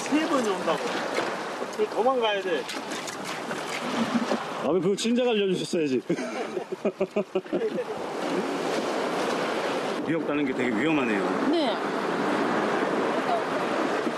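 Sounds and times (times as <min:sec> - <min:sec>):
sea waves crashing on shore: 0:00.0 - 0:14.1
speech: 0:00.4 - 0:08.6, 0:10.1 - 0:12.3
laughter: 0:06.0 - 0:08.0.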